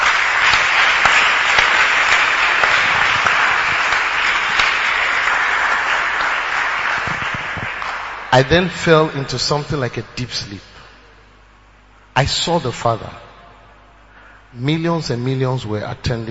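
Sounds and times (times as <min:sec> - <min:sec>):
audience clapping: 0:00.0 - 0:09.3
speech: 0:08.3 - 0:10.7, 0:12.2 - 0:13.2, 0:14.5 - 0:16.3.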